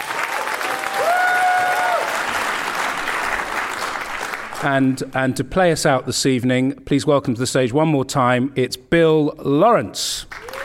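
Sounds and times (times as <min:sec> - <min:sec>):
audience applause greeting a guest at an evening event: 0:00.0 - 0:05.1, 0:10.3 - 0:10.6
speech: 0:04.6 - 0:10.4.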